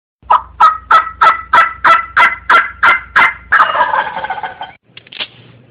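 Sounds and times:
funny turkey sound: 0:00.2 - 0:04.8.

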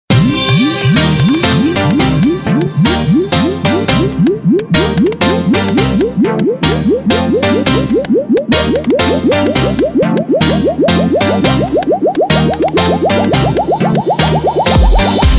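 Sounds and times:
cool electronica ringtone: 0:00.1 - 0:15.2.

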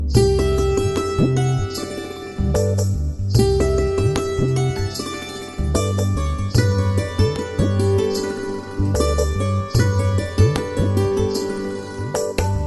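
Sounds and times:
nature ambience: 0:00.0 - 0:12.6.

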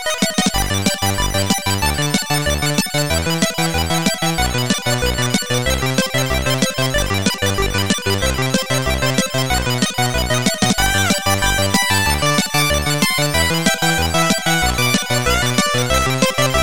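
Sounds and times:
8-bit music: 0:00.1 - 0:16.6.

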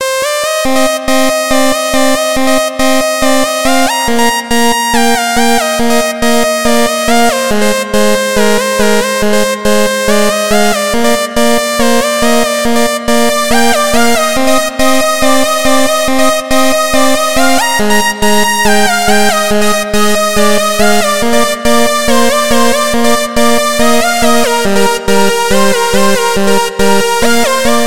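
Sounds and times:
electro melody: 0:00.0 - 0:27.8.

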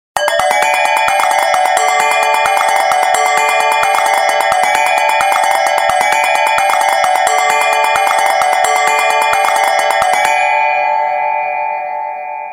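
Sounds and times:
flurry of bells ringing: 0:00.2 - 0:12.5.

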